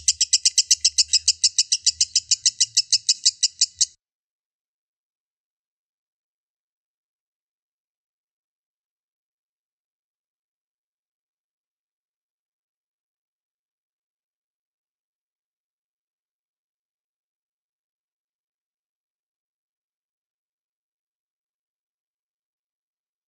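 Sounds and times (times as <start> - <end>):
kusuma lovebird singing a long ngekek trill: 0.0 - 4.0.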